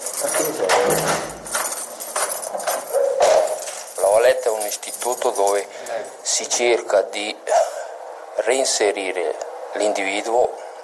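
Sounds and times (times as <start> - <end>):
footsteps echoing in corridor: 0.0 - 4.3
keys jangling: 0.0 - 6.3
speech: 0.4 - 1.2, 4.7 - 7.6, 8.5 - 10.8.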